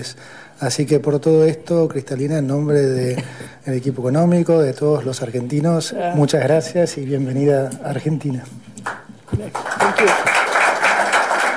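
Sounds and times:
speech: 0.0 - 10.4
applause at a press conference: 8.8 - 11.5.

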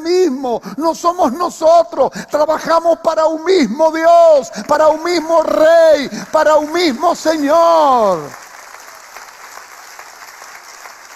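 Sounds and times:
speech: 0.3 - 8.4
audience applause: 4.6 - 11.1.

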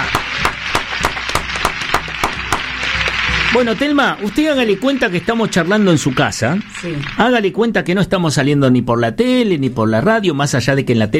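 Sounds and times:
crowd applause: 0.0 - 8.0
speech: 3.6 - 11.1.

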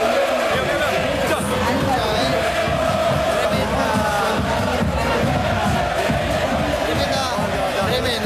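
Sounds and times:
football fans shouting and chanting in stands: 0.0 - 8.2.

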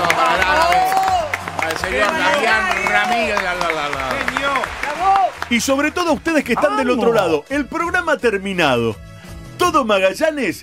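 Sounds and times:
audience applause: 0.0 - 7.4
speech: 5.5 - 9.1, 9.7 - 10.6.

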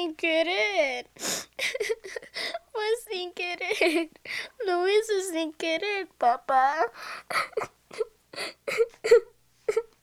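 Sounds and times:
speech: 0.0 - 2.2, 3.4 - 9.3
young girl crying in fright: 0.5 - 2.8, 3.5 - 4.7, 6.6 - 10.0.

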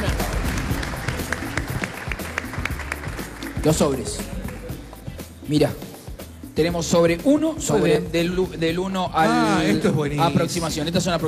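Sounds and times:
audience applause: 0.0 - 3.6
speech: 3.6 - 4.4, 5.5 - 5.9, 6.6 - 11.2.

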